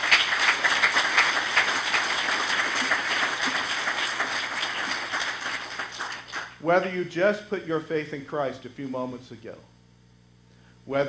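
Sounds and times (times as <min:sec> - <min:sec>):
audience clapping: 0:00.0 - 0:06.6
speech: 0:06.6 - 0:09.7, 0:10.9 - 0:11.0.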